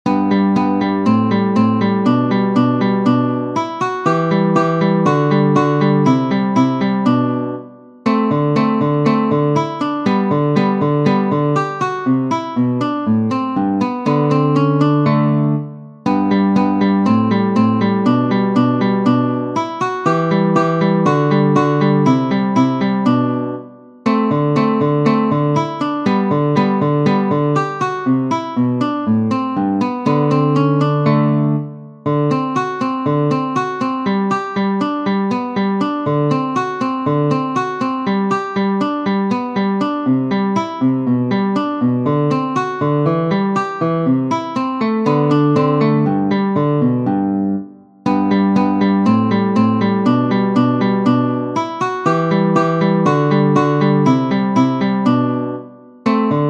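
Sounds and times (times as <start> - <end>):
guitar piece: 0.0 - 56.4.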